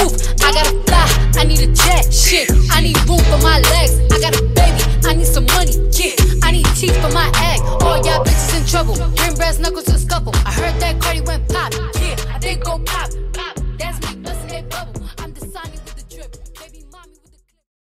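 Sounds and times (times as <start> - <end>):
hip hop funky bass at 130 BPM: 0.0 - 17.0.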